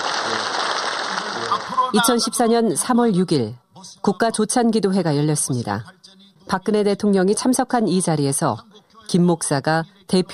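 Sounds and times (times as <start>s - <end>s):
crowd applauding: 0.0s - 2.3s
speech: 1.9s - 10.3s.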